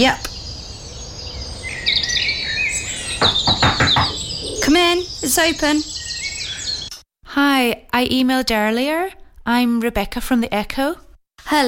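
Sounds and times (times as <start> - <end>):
speech: 0.0 - 0.2, 4.7 - 5.9, 7.4 - 11.6
dawn chorus of several birds singing: 0.0 - 7.0.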